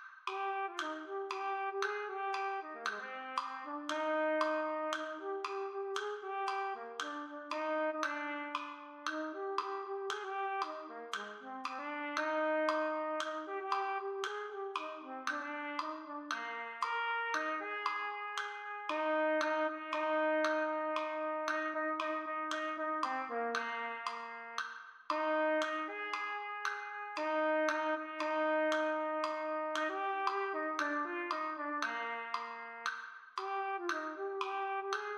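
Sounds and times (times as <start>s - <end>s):
B-flat trumpet playing a march: 0.3s - 35.1s.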